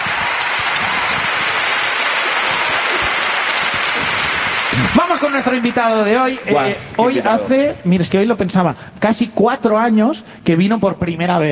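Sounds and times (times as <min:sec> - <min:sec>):
audience applause: 0:00.0 - 0:07.6
speech: 0:04.8 - 0:11.5.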